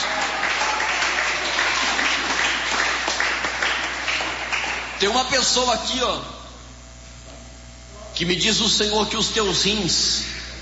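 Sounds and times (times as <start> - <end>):
audience applause: 0.0 - 5.1
speech: 5.0 - 6.4, 8.2 - 10.3.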